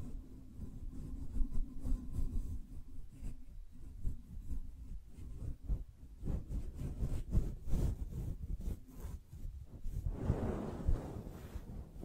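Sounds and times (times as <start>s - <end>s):
soft brushing strokes: 0.0s - 12.0s.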